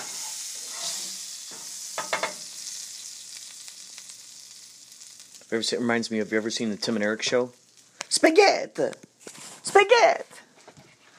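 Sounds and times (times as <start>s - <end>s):
potatoes sizzling in a pan: 0.0s - 8.9s
speech: 5.5s - 7.6s, 8.2s - 9.0s, 9.8s - 10.4s.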